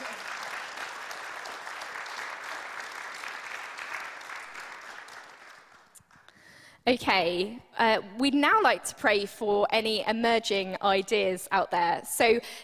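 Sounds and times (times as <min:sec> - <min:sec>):
audience applause: 0:00.0 - 0:06.3
speech: 0:06.9 - 0:12.6.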